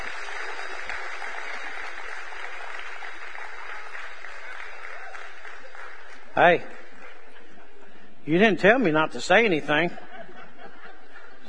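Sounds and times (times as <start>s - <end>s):
crowd applauding: 0.0s - 7.6s
speech: 6.4s - 6.8s, 8.2s - 10.1s
laughter: 6.8s - 8.2s, 9.7s - 11.4s.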